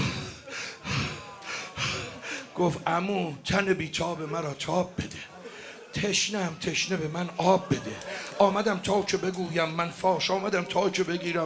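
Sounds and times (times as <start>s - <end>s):
person imitating heavy panting breath: 0.0s - 2.5s
laughter: 0.0s - 2.8s, 4.2s - 11.4s
speech: 2.6s - 5.2s, 6.0s - 11.4s.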